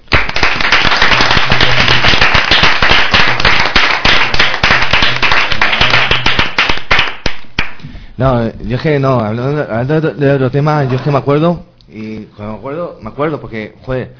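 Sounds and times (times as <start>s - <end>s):
applause: 0.0s - 7.8s
speech: 8.2s - 14.1s.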